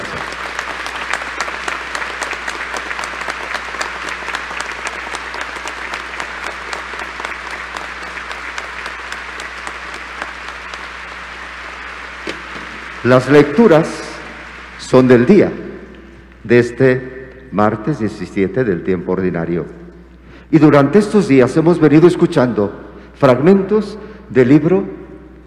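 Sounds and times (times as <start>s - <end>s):
large audience applauding: 0.0s - 16.2s
faint low hum: 0.0s - 25.4s
speech: 13.0s - 14.1s, 14.9s - 15.6s, 16.5s - 19.8s, 20.5s - 25.0s.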